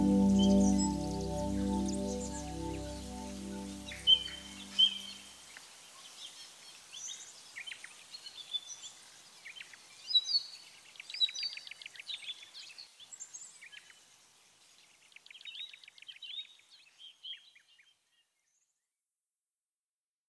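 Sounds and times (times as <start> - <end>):
ambient organ: 0.0 - 5.1.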